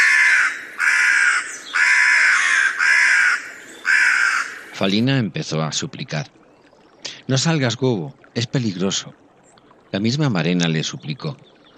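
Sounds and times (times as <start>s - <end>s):
crows cawing alarm calls from the air: 0.0s - 4.9s
speech: 4.8s - 6.4s, 7.3s - 9.2s, 9.9s - 11.5s.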